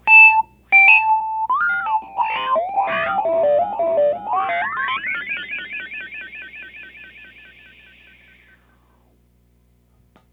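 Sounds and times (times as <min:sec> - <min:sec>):
Rhodes electric piano with fuzz: 0:00.0 - 0:08.0.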